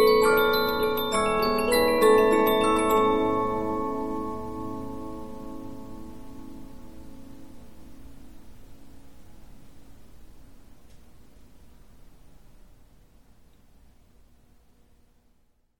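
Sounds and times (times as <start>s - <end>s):
15 inch Polyphon music box: 0.0s - 8.1s.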